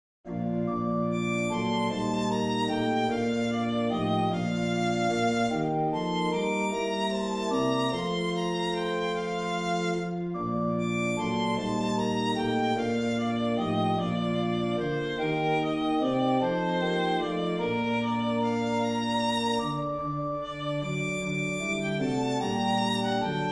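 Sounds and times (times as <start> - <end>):
descant violin: 0.3 - 23.5
keyboard: 0.3 - 23.5.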